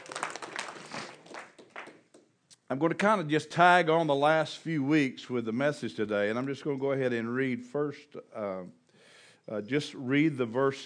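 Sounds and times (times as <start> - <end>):
audience applause: 0.0 - 2.0
speech: 2.7 - 8.8, 9.5 - 10.8.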